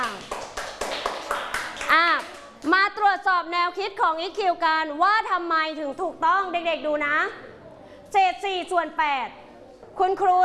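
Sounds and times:
schoolchildren clapping in a classroom: 0.0 - 2.7
speech: 3.1 - 7.5, 8.1 - 9.4, 10.0 - 10.4.

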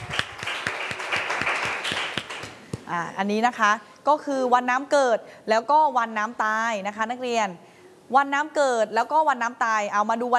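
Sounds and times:
classroom applause: 0.0 - 2.6
speech: 2.9 - 10.3.

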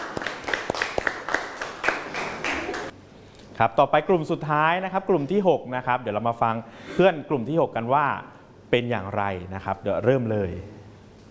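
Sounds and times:
group clapping: 0.0 - 3.0
speech: 3.6 - 10.8.

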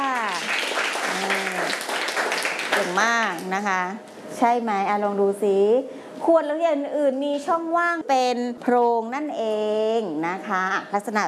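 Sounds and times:
children clapping for a classmate in a class: 0.0 - 3.6
speech: 3.0 - 11.2.

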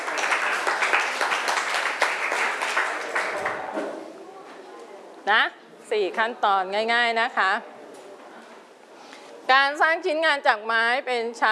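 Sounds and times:
classroom applause: 0.0 - 3.7
speech: 5.3 - 7.7, 9.5 - 11.4.

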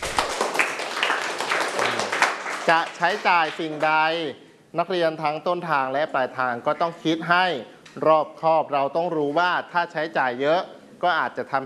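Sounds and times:
students clapping lightly for a classmate: 0.0 - 3.9
speech: 2.6 - 11.6.

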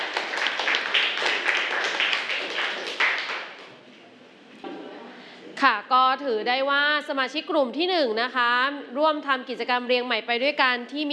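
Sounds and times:
audience clapping: 0.0 - 3.8
speech: 5.6 - 11.1.

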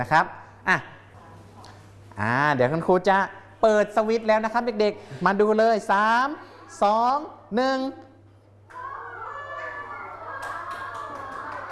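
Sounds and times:
speech: 0.0 - 1.0, 2.2 - 8.1
children clapping hands: 10.0 - 11.7.

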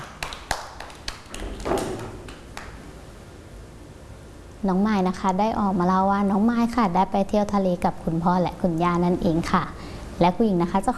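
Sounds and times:
children clapping: 0.0 - 2.8
speech: 4.6 - 10.9.

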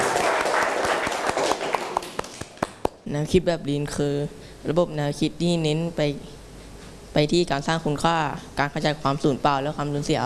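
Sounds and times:
students clapping in a classroom: 0.0 - 3.0
speech: 3.1 - 6.4, 7.1 - 10.2.

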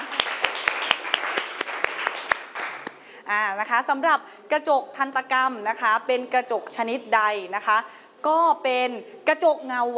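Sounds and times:
classroom applause: 0.0 - 3.0
speech: 3.3 - 9.9.

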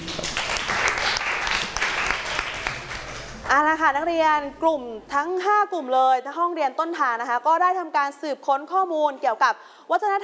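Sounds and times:
classroom applause for a student group: 0.0 - 3.5
speech: 3.8 - 10.2.

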